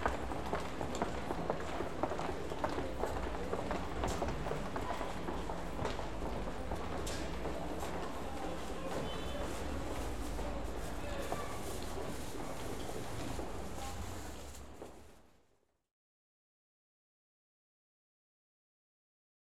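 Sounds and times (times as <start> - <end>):
pedestrian precinct ambience in France: 0.0 - 15.5.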